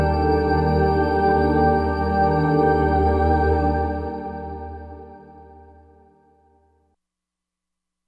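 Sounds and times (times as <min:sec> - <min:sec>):
piano: 0:00.0 - 0:05.9.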